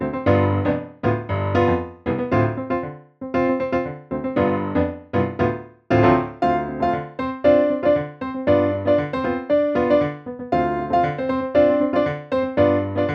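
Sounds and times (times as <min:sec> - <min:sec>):
funk music: 0:00.2 - 0:13.1.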